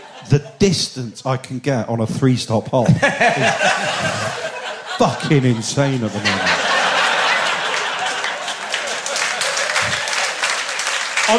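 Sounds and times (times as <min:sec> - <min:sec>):
laughter: 0:00.0 - 0:01.5, 0:02.8 - 0:11.3
speech: 0:00.2 - 0:04.4, 0:05.0 - 0:06.6
audience applauding: 0:06.1 - 0:11.3.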